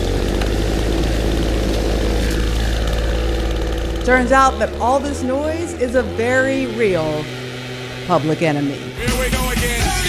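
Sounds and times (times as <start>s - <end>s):
plane flying overhead: 0.0s - 9.0s
speech: 4.1s - 7.4s, 8.1s - 10.0s.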